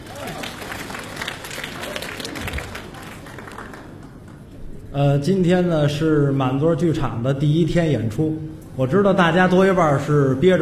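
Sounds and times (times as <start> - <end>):
crowd applauding: 0.0 - 4.6
speech: 5.0 - 10.6.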